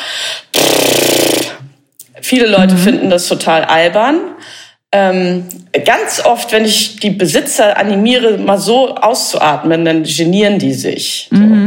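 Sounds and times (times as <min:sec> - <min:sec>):
person imitating a horse snort with vibrating lips: 0:00.5 - 0:01.7
speech: 0:02.3 - 0:11.6.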